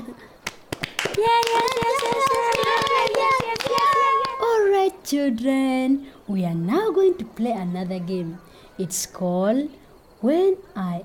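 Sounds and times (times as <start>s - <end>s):
group clapping hands: 0.4s - 4.6s
speech: 1.2s - 2.2s, 5.1s - 11.0s.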